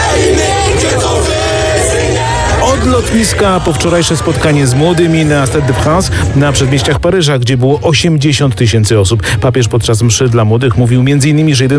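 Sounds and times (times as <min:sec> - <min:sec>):
crowds in France cheering and yelling to greet Pope Leo XIV: 0:00.0 - 0:07.7
speech: 0:03.0 - 0:11.7.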